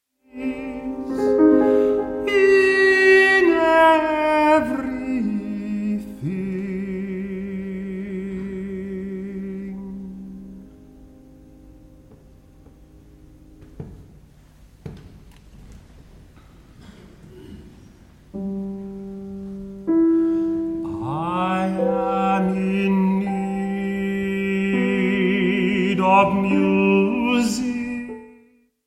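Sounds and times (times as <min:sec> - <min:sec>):
piano: 0:00.0 - 0:28.8
voice singing sonnets: 0:00.2 - 0:11.2, 0:19.9 - 0:28.7.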